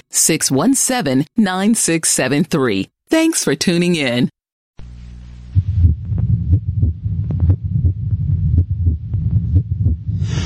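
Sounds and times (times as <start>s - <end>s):
speech: 0.1s - 4.4s
heartbeat: 5.5s - 10.4s.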